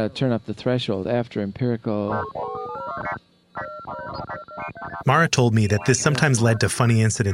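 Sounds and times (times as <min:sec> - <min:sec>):
speech: 0:00.0 - 0:03.3, 0:05.0 - 0:07.3
synthetic musical tones from sensory device: 0:02.0 - 0:07.3.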